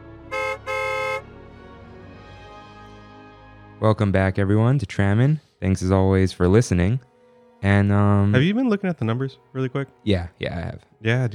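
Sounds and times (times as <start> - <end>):
tram horn: 0.0 - 1.4
speech: 3.8 - 11.3.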